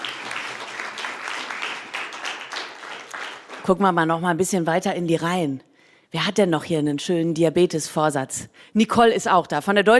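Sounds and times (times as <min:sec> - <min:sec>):
audience applause: 0:00.0 - 0:03.7
speech: 0:03.7 - 0:09.9.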